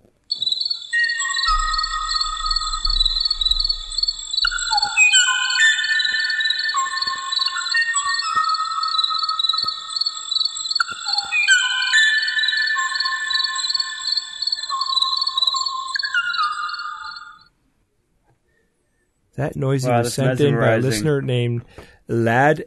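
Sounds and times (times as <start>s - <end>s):
bird whistling call: 0.3s - 17.4s
speech: 19.4s - 22.6s.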